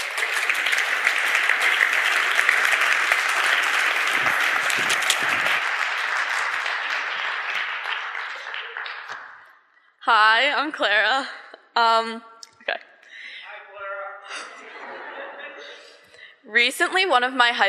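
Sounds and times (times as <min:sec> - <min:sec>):
audience applause: 0:00.0 - 0:09.6
speech: 0:10.1 - 0:12.8, 0:16.5 - 0:17.6
laughter: 0:14.3 - 0:16.3.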